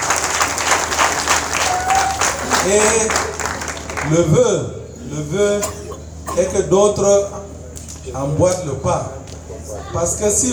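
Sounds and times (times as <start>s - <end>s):
audience applause at a book presentation: 0.0s - 4.3s
speech: 2.6s - 3.3s, 4.0s - 5.8s, 6.4s - 7.4s, 8.0s - 9.2s, 9.8s - 10.5s.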